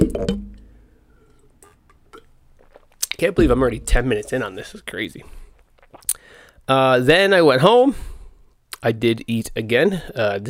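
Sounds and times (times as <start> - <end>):
speech: 0.2 - 0.6, 3.2 - 5.4, 6.7 - 8.1, 8.8 - 10.4
person sipping and gulping water: 1.2 - 6.6
container clunk: 3.4 - 4.8.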